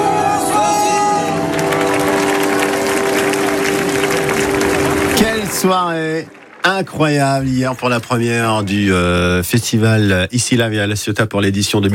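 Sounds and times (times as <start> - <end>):
audience applauding and cheering: 0.4 - 9.5
speech: 5.6 - 11.9.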